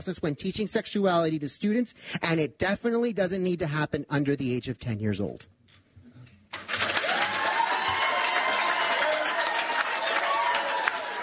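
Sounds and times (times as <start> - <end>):
speech: 0.0 - 5.6
audience of parents applauding and cheering: 6.5 - 11.2.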